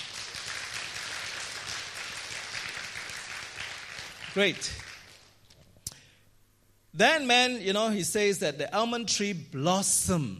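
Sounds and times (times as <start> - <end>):
audience clapping: 0.0 - 5.5
speech: 4.4 - 4.9, 7.0 - 10.3.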